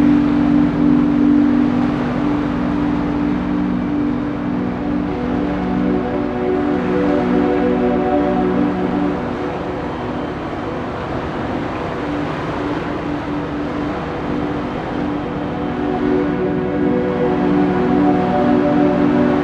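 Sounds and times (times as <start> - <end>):
rain white noise: 0.0 - 19.4.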